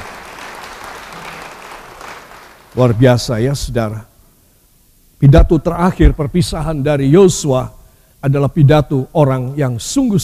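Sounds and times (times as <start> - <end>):
audience applause: 0.0 - 3.0
speech: 2.8 - 4.1, 5.2 - 10.2.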